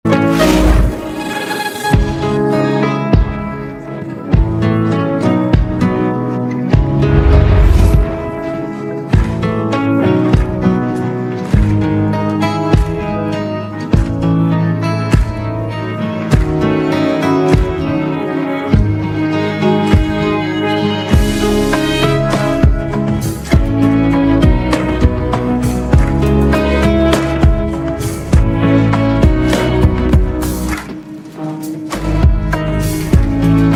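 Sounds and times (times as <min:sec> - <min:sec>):
karaoke backing track: 0:00.1 - 0:33.7.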